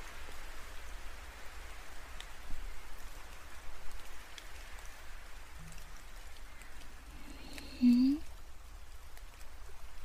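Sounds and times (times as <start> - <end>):
gentle sun-shower rain pattering: 0.0 - 10.0.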